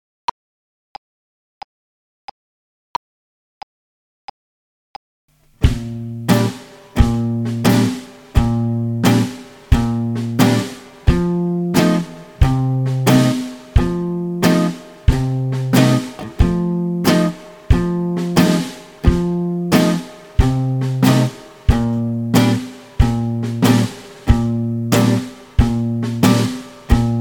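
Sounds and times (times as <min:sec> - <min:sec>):
slow two-beat music: 0:05.6 - 0:27.1.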